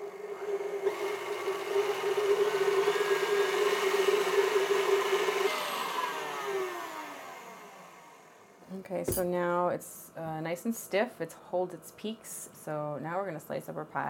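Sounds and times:
electric mixer whirring on medium-high whipping meringue: 0.0s - 8.6s
speech: 9.0s - 14.0s.

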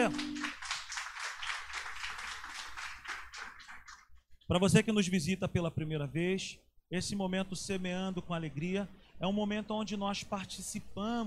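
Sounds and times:
speech: 0.0s - 0.3s, 4.5s - 11.2s
audience applauding: 0.0s - 4.1s.

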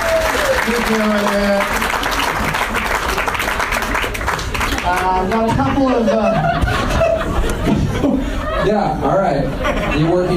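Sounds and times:
crowd applause for game show contestants: 0.0s - 5.9s
speech: 0.9s - 1.8s, 4.9s - 7.0s, 8.6s - 10.3s
laughter: 5.1s - 10.3s.

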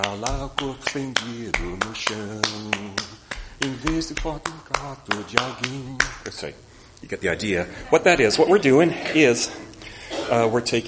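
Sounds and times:
person singing on off-beats: 0.0s - 6.1s
hand clapping on off-beats: 0.0s - 6.4s
speech: 0.0s - 10.8s.

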